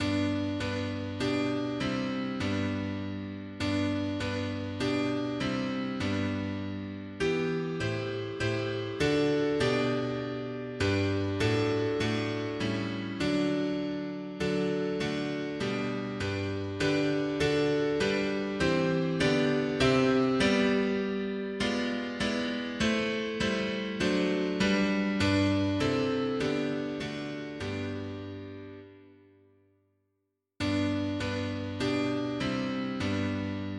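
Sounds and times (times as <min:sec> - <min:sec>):
mono piano: 0:00.0 - 0:29.7, 0:30.6 - 0:33.7.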